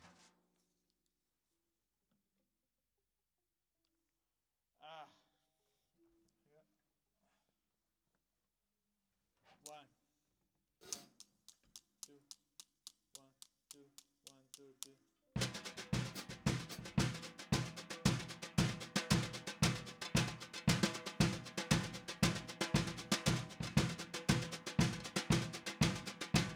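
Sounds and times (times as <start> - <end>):
snare drum: 15.4 - 26.5.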